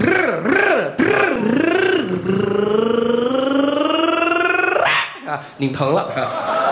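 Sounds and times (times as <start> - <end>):
voice imitating a motorcycle engine: 0.0 - 5.0
speech: 5.6 - 6.6.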